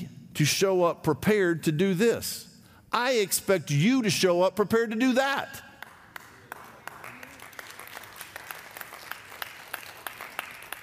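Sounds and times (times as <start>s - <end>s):
speech: 0.4s - 5.7s
audience clapping in a church: 5.7s - 10.8s.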